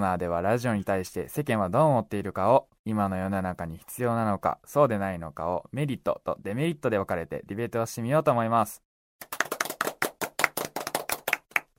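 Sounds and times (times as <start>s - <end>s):
speech: 0.0s - 9.3s
crowd hand clapping: 9.2s - 11.7s.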